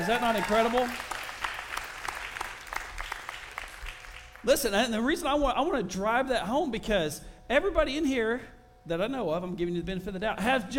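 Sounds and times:
speech: 0.0s - 1.1s, 4.4s - 10.7s
audience applauding: 0.0s - 4.5s.

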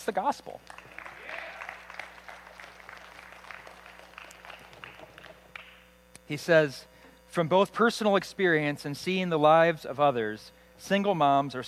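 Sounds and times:
speech: 0.0s - 1.0s, 6.3s - 11.6s
audience clapping: 0.6s - 5.8s.

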